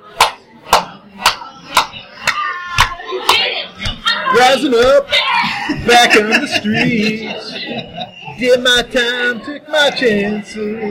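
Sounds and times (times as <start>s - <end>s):
people clapping hands: 0.1s - 4.2s
speech: 4.4s - 5.2s, 5.8s - 10.9s
laughter: 4.6s - 10.7s.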